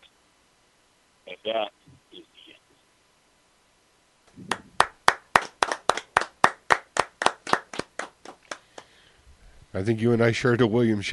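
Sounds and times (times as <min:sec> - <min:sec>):
speech: 0:01.4 - 0:02.3, 0:09.8 - 0:11.1
hand clapping: 0:04.4 - 0:08.9.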